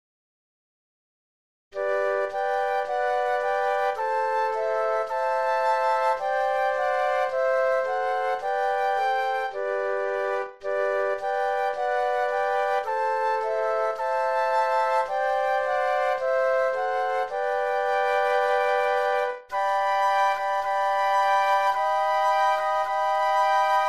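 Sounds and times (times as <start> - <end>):
flute trio playing: 1.8 - 23.8.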